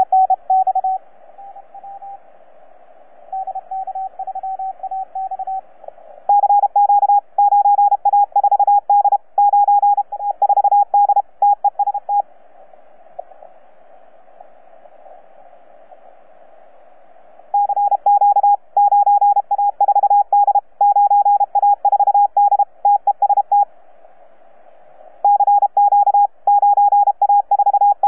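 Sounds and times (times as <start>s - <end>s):
CW Morse code beeps: 0.0s - 2.2s, 3.3s - 5.6s, 6.3s - 12.2s, 17.6s - 23.6s, 25.2s - 28.0s.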